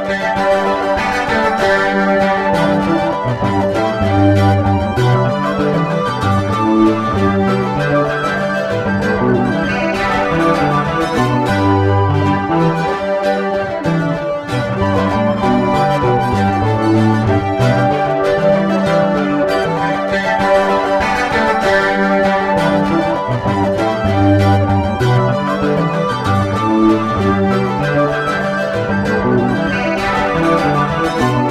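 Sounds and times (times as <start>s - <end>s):
music loop: 0.1s - 31.5s.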